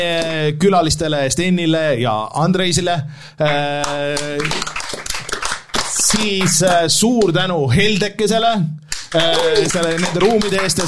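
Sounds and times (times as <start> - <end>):
speech: 0.0 - 5.0, 6.0 - 10.8
audience applause: 3.5 - 6.8, 9.0 - 10.8.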